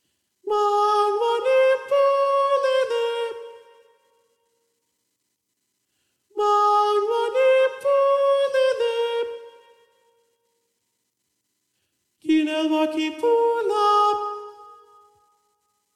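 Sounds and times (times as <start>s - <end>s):
soprano singing: 0.5s - 3.9s, 6.3s - 9.9s, 12.2s - 15.2s.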